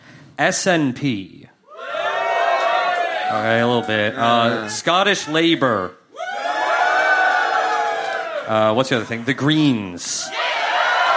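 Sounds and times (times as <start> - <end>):
speech: 0.4 - 1.5, 3.3 - 6.0, 8.5 - 10.4
live audience cheering: 1.7 - 9.4, 10.1 - 11.1.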